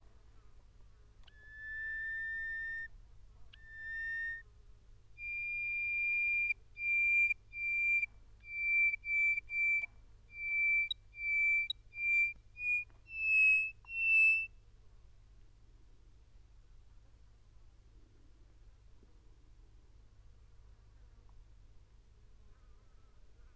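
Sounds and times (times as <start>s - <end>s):
bird whistling: 1.3s - 2.9s, 3.6s - 4.4s, 5.2s - 14.5s.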